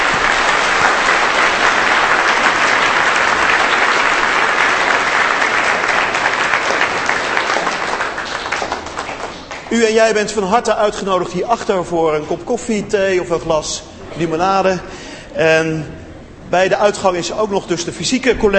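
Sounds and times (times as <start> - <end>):
audience applauding: 0.0 - 11.2
speech: 9.7 - 18.5.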